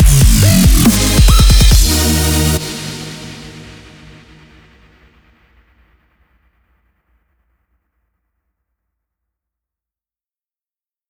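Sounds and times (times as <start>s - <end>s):
instrumental EDM at 140 BPM: 0.0s - 4.2s.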